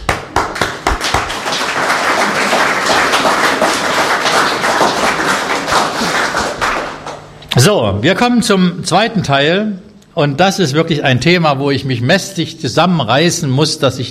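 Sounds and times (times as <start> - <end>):
audience applause: 0.0 - 7.4
speech: 7.6 - 14.0.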